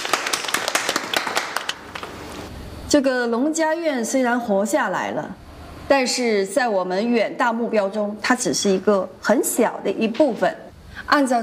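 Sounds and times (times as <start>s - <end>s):
small group clapping at a farm guesthouse: 0.0s - 2.2s
speech: 2.9s - 11.4s.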